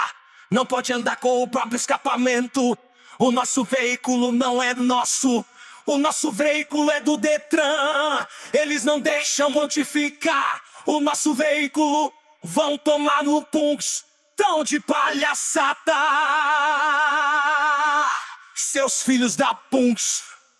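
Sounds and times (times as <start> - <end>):
vocals over piseiro music: 0.7 - 20.4.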